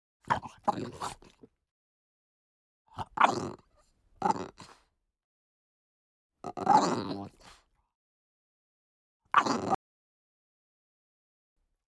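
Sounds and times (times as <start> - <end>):
French Bulldog snarling with a rough tonal growl: 0.3 - 1.5, 2.9 - 4.8, 6.4 - 7.6, 9.3 - 9.8.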